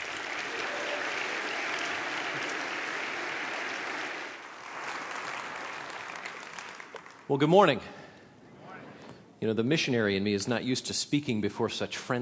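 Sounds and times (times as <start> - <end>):
audience applause welcoming a speaker: 0.0 - 7.3
speech: 7.3 - 8.0, 9.4 - 12.2.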